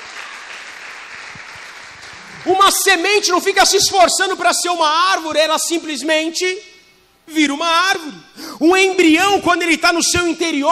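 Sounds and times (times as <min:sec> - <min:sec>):
audience applauding: 0:00.0 - 0:03.0
speech: 0:02.4 - 0:06.7, 0:07.3 - 0:10.6.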